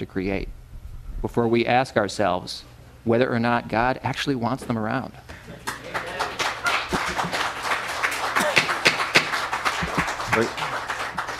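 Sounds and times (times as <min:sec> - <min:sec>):
speech: 0:00.1 - 0:00.6, 0:01.2 - 0:06.0, 0:10.4 - 0:10.7
audience applause: 0:05.6 - 0:11.3.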